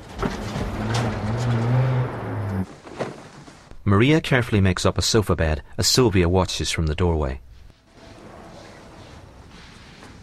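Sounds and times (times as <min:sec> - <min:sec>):
pickup truck engine driving off into the darkness: 0:00.3 - 0:02.7
speech: 0:03.9 - 0:07.5.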